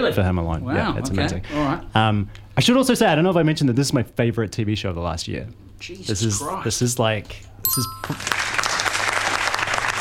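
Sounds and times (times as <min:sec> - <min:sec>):
speech: 0:00.1 - 0:08.5
bright bell-like ding: 0:07.6 - 0:08.6
applause: 0:08.0 - 0:09.9.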